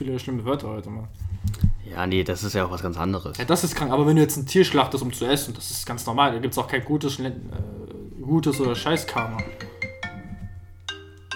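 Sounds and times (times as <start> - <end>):
speech: 0.0 - 9.7
phone ringtone ringing: 8.5 - 11.3.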